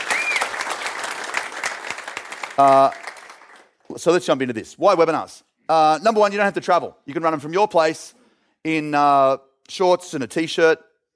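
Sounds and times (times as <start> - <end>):
audience applause: 0.0 - 3.8
speech: 2.6 - 3.0, 3.9 - 10.9.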